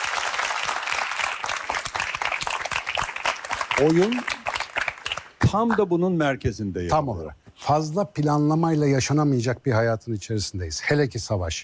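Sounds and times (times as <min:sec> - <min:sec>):
audience applauding: 0:00.0 - 0:05.4
speech: 0:03.8 - 0:04.4, 0:05.4 - 0:11.6.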